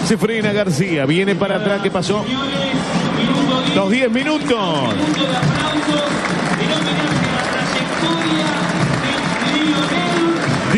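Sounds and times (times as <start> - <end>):
speech: 0.1 - 7.0
stadium crowd applauding: 3.2 - 10.7.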